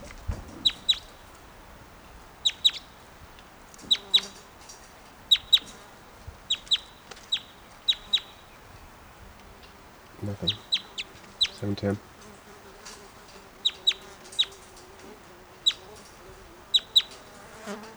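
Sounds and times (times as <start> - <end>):
birds clucking: 0.0 - 17.9
speech: 10.4 - 10.6, 11.6 - 12.1.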